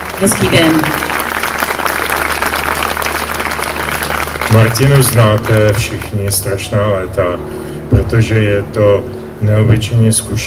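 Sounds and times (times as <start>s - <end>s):
audience applause: 0.0s - 6.7s
speech: 0.2s - 1.1s, 4.5s - 10.4s.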